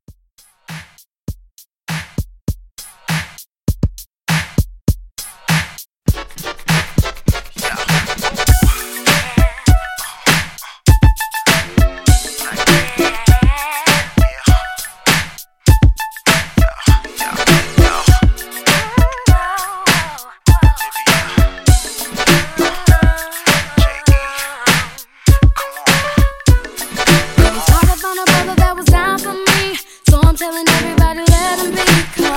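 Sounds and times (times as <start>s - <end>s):
throwback pop RnB music: 5.2s - 32.3s.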